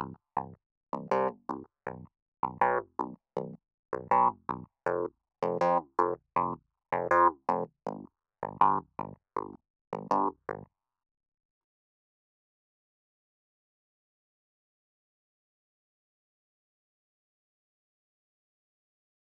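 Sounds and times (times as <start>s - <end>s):
clavinet: 0.0s - 10.6s.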